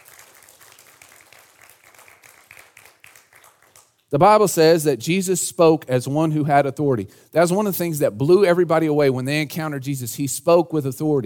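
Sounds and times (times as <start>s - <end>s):
crowd audience hand clapping: 0.0s - 4.1s
speech: 4.1s - 11.2s.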